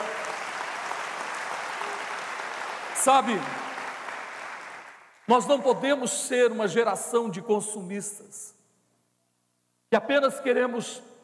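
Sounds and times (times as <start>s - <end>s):
audience applause: 0.0s - 5.1s
speech: 3.0s - 3.6s, 5.3s - 8.6s, 9.9s - 11.2s.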